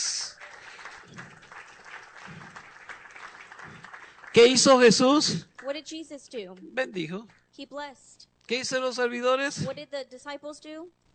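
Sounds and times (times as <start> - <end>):
audience applause: 0.0 - 5.7
speech: 4.4 - 11.0.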